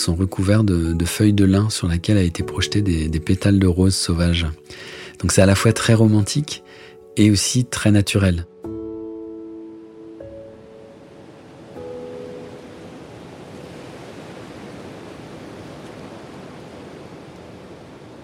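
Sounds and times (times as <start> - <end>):
speech: 0.0 - 8.5
sea waves carried by the wind: 7.8 - 18.2
wind blowing: 9.0 - 18.2.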